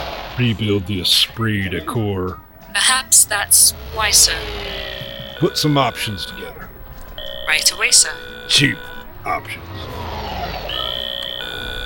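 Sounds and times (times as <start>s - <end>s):
low rumbling background: 0.0s - 11.8s
speech: 0.4s - 6.6s, 7.5s - 10.0s
door buzzer ringing: 3.8s - 11.8s.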